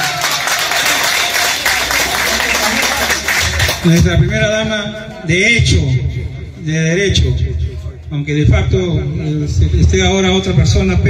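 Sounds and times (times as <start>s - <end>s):
audience applause: 0.0s - 3.9s
speech: 3.8s - 7.5s, 8.1s - 11.0s.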